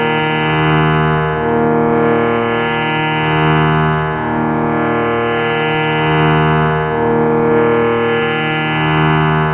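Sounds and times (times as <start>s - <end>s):
sruthi drone in D-sharp: 0.0s - 9.5s.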